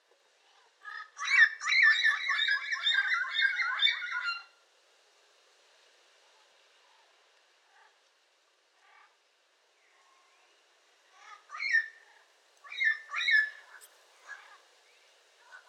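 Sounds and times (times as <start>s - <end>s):
yellow-crowned amazon squawking: 0.9s - 4.4s, 12.7s - 14.6s.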